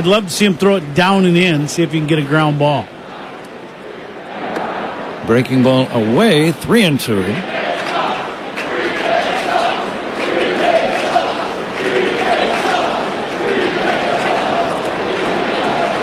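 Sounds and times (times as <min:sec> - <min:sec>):
speech: 0:00.0 - 0:03.0, 0:05.3 - 0:07.6
stadium crowd chanting: 0:02.8 - 0:05.4, 0:07.2 - 0:16.0.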